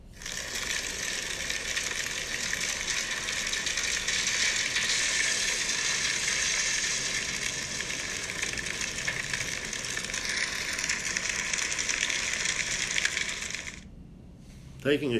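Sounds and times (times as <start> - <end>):
forest fire crackling: 0.0 - 13.9.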